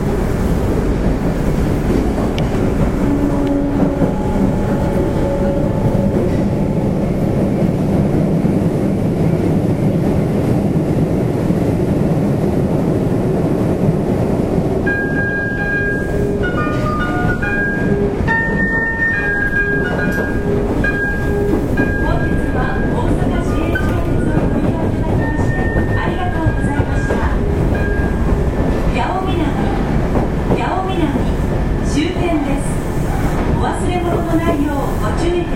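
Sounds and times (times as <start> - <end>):
Osaka city subway 30000 series train running on the Tanimachi Line: 0.0 - 35.5.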